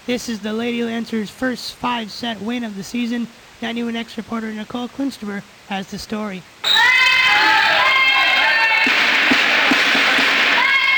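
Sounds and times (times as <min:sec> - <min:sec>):
speech: 0:00.0 - 0:07.0
volleyball fans cheering and shouting in the bleachers: 0:06.6 - 0:10.9
sharp thumps and claps: 0:08.8 - 0:10.8.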